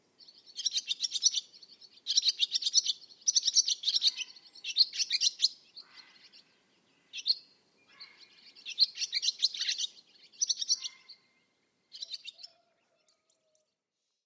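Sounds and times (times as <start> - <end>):
bird song with buzzy trilled phrases: 0.2 - 13.7.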